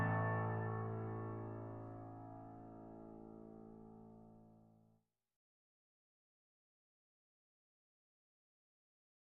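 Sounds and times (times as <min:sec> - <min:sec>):
delicate piano etude: 0:00.0 - 0:04.6.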